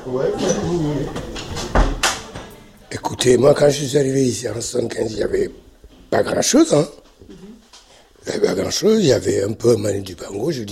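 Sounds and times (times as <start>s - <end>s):
speech: 0.0s - 1.6s, 3.0s - 7.3s, 8.3s - 10.6s
door being closed: 1.0s - 2.5s.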